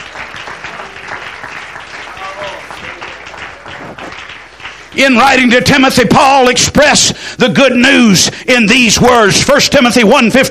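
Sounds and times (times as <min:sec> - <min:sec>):
audience clapping hands: 0:00.0 - 0:05.9
speech: 0:05.0 - 0:10.5.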